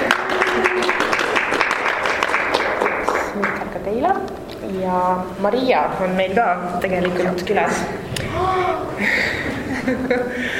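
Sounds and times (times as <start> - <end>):
audience applause: 0.0 - 3.6
speech: 4.8 - 10.5
laughter: 8.4 - 10.5.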